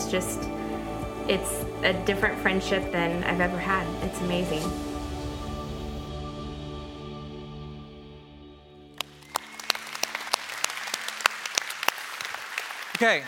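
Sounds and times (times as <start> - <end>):
low tonal drone: 0.0 - 10.3
speech: 0.1 - 0.5, 1.3 - 4.9, 13.0 - 13.2
audience clapping: 9.0 - 13.2.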